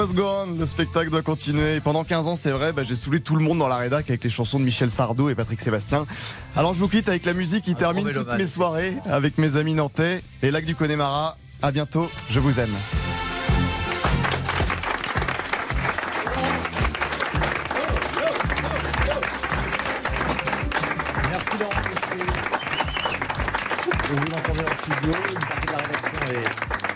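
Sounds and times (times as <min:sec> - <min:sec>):
speech: 0:00.0 - 0:13.1
people applauding in the studio: 0:13.6 - 0:26.9.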